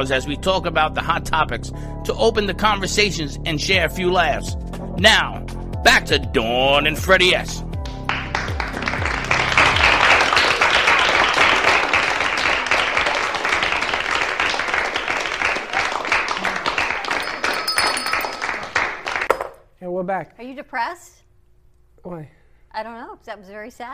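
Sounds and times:
speech: 0:00.0 - 0:07.7, 0:20.2 - 0:21.2, 0:22.0 - 0:23.9
crowd applause: 0:07.8 - 0:19.3.

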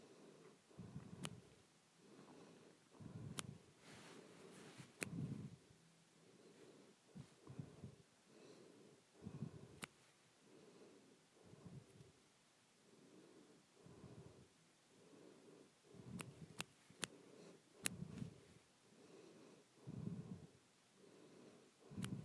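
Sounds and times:
soft breathing: 0:00.0 - 0:12.2, 0:12.8 - 0:22.2
quick sharp snaps: 0:01.0 - 0:01.5, 0:03.3 - 0:03.6, 0:09.8 - 0:10.0, 0:16.1 - 0:17.2, 0:17.8 - 0:18.2.

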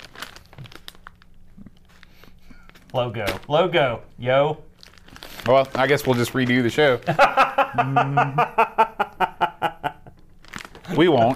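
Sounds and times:
brown paper package being unwrapped: 0:00.0 - 0:03.5, 0:04.8 - 0:07.4, 0:10.4 - 0:11.3
speech: 0:02.9 - 0:04.7, 0:05.4 - 0:08.8, 0:11.0 - 0:11.3
laughter: 0:07.0 - 0:10.1.

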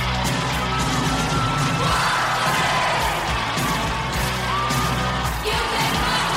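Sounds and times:
stadium crowd cheering: 0:00.0 - 0:06.3
stadium crowd singing: 0:01.8 - 0:04.6, 0:05.2 - 0:06.3.

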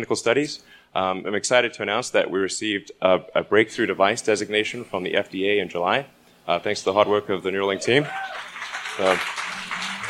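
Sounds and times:
speech: 0:00.0 - 0:09.4
audience applause: 0:08.0 - 0:10.0.

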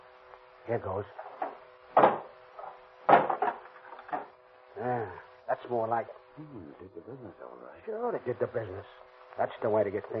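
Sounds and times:
speech: 0:00.7 - 0:01.3, 0:04.8 - 0:10.1
wood splintering: 0:01.4 - 0:02.3, 0:03.1 - 0:04.3
hammer forcing open a wooden door: 0:02.0 - 0:02.3, 0:03.1 - 0:03.6.

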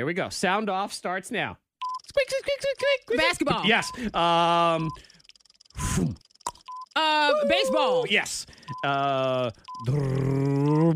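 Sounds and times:
speech: 0:00.0 - 0:05.1, 0:05.9 - 0:06.3, 0:07.0 - 0:10.9
voice imitating a race car engine: 0:09.8 - 0:10.9.

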